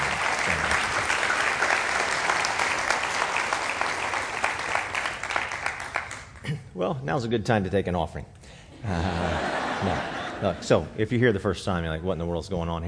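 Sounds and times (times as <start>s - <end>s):
audience applause: 0.0s - 6.4s
speech: 6.8s - 12.8s
laughter: 8.8s - 11.0s.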